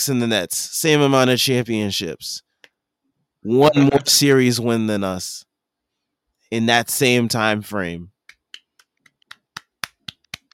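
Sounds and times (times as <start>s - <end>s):
speech: 0.0s - 2.5s, 3.4s - 5.5s, 6.5s - 8.1s
single person clapping hands: 8.2s - 10.5s.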